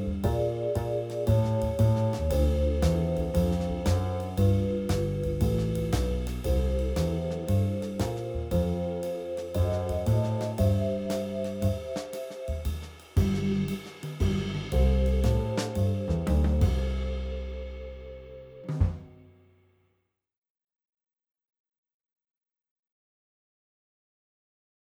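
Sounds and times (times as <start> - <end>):
walking bass backing: 0.0 - 19.1.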